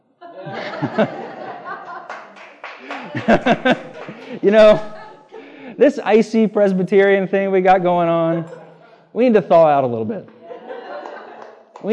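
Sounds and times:
audience laughing: 0:00.2 - 0:05.6, 0:10.4 - 0:11.7
speech: 0:00.8 - 0:01.2, 0:03.1 - 0:05.0, 0:05.8 - 0:10.4
scattered hand claps: 0:01.9 - 0:04.4, 0:11.0 - 0:11.9.

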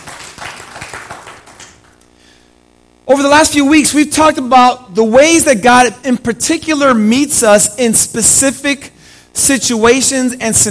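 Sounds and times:
audience clapping: 0:00.0 - 0:02.0
speech: 0:03.1 - 0:10.6.

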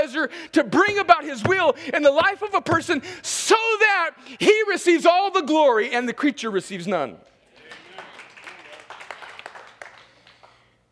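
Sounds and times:
speech: 0:00.2 - 0:07.3
audience clapping: 0:07.6 - 0:10.8.

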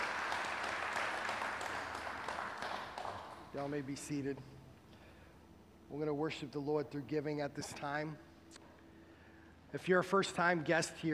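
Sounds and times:
audience clapping in praise: 0:00.0 - 0:03.7
speech: 0:03.6 - 0:04.6, 0:05.9 - 0:08.6, 0:09.7 - 0:11.1.

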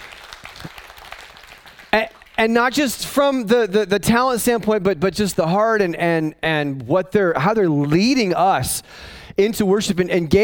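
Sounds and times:
audience clapping: 0:00.0 - 0:03.0
speech: 0:02.0 - 0:10.4.

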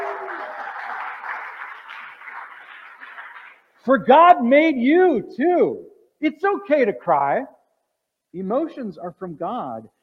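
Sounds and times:
crowd cheering with whoops: 0:00.0 - 0:03.5
crowd applauding: 0:00.0 - 0:03.9
speech: 0:03.8 - 0:07.6, 0:08.3 - 0:10.0.

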